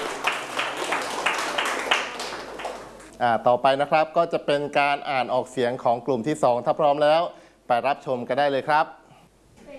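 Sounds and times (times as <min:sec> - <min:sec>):
classmates clapping hands in steady rhythm: 0:00.0 - 0:03.2
speech: 0:03.2 - 0:09.0.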